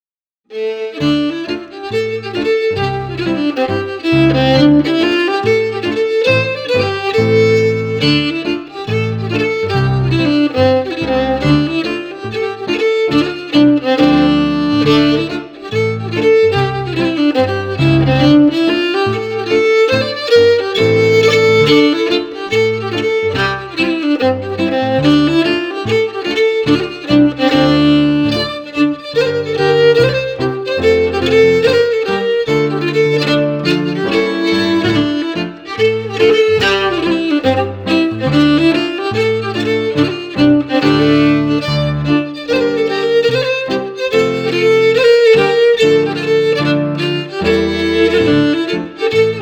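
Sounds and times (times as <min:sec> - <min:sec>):
fiddle: 0:00.5 - 0:49.4
piano: 0:00.5 - 0:49.4.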